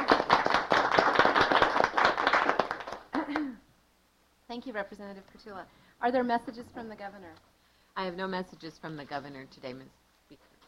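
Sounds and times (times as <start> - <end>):
audience clapping: 0.0 - 3.5
speech: 4.6 - 10.5.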